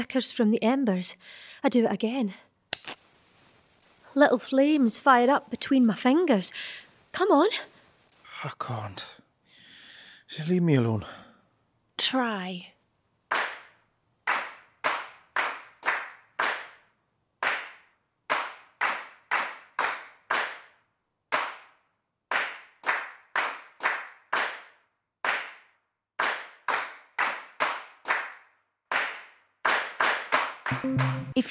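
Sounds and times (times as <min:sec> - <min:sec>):
speech: 0:00.0 - 0:02.4, 0:04.2 - 0:07.7, 0:08.4 - 0:09.2, 0:10.3 - 0:11.2, 0:12.0 - 0:12.7
rhythmic hand clapping: 0:13.3 - 0:16.8, 0:17.4 - 0:31.4.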